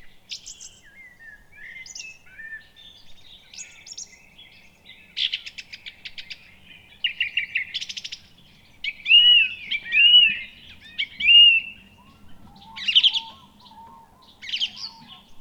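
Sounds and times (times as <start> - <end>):
song thrush singing: 8.9 - 15.3.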